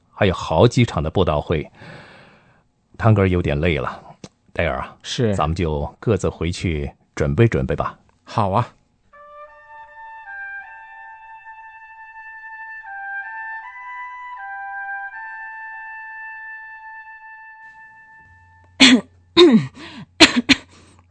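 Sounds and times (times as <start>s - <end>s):
speech: 0.2s - 2.1s, 3.0s - 8.8s
sustained musical tones: 9.2s - 19.4s
throat clearing: 18.8s - 20.8s
coughing: 18.8s - 21.0s.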